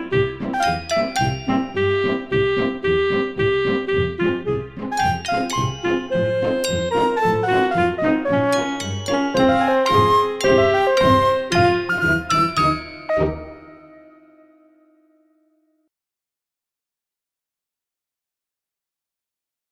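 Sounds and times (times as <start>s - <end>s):
instrumental backing track: 0.1s - 14.4s.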